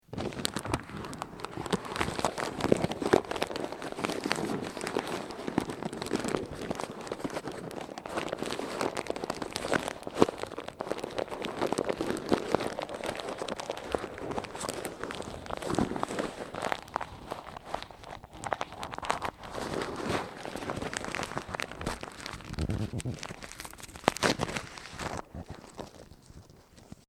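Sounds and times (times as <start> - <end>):
paper rustling: 0.1 - 27.0.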